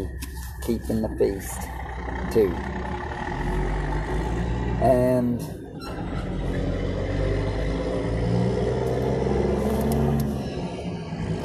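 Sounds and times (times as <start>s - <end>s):
speech: 0.0s - 3.0s, 4.8s - 5.6s
road traffic rumble of passing vehicles: 0.0s - 11.4s.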